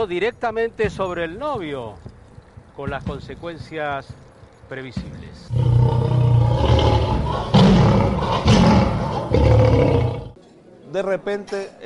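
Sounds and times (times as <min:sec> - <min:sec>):
speech: 0:00.0 - 0:02.1, 0:02.8 - 0:06.2, 0:06.8 - 0:09.9, 0:10.9 - 0:11.8
lion roaring: 0:05.5 - 0:10.4.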